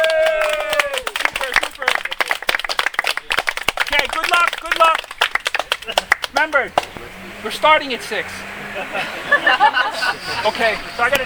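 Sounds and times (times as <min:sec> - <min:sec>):
loud cheering voice: 0:00.0 - 0:01.6
audience applause: 0:00.0 - 0:07.0
laughter: 0:03.1 - 0:06.7, 0:08.4 - 0:11.2
speech: 0:04.3 - 0:05.0, 0:05.8 - 0:11.2.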